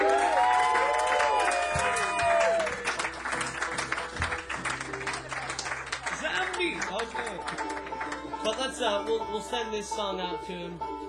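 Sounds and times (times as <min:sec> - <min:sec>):
audience applause and cheering: 0:00.0 - 0:08.6
speech: 0:08.8 - 0:10.9.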